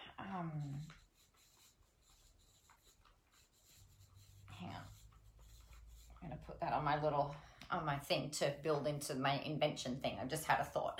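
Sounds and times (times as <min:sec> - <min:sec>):
speech: 0:00.3 - 0:01.0, 0:06.2 - 0:10.9
pen scratching on paper writing a note by hand: 0:00.3 - 0:06.6.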